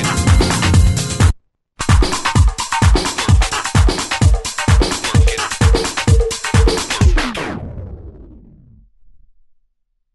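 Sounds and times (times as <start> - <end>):
retro funk music: 0.0 - 7.8.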